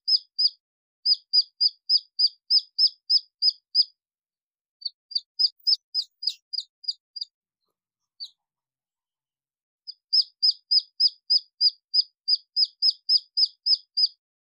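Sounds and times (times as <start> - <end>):
red junglefowl chick peeping: 0.0 - 3.9, 4.8 - 7.3, 9.9 - 14.2.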